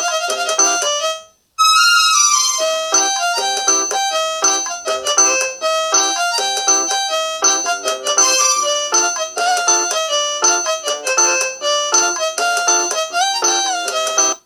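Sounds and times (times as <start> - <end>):
Nokia phone ringtone Arabic: 0.0 - 14.4.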